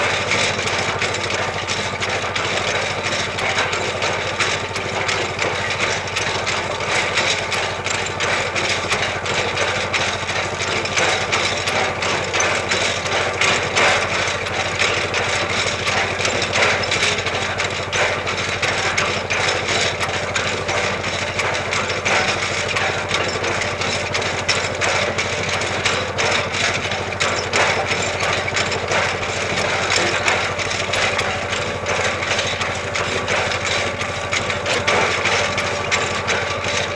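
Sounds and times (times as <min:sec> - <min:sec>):
tractor shaking hay: 0:00.0 - 0:36.9.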